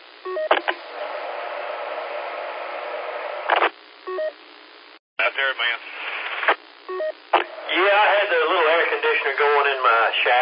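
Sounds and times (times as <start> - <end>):
radio crackling bursts: 3.5 - 4.0, 4.6 - 10.4
radio transmitter unmodulated carrier hiss: 5.2 - 6.7, 7.3 - 10.4
speech: 5.4 - 6.0, 6.9 - 10.4.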